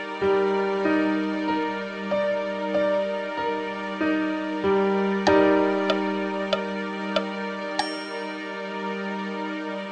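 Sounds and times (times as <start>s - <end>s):
major seventh chord inversion: 0.2s - 9.8s.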